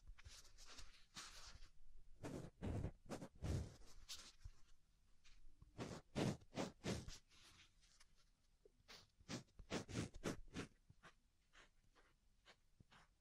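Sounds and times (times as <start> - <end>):
soft fluffy rubbing and brushing: 0.2 - 4.7, 5.8 - 8.2, 8.9 - 13.2.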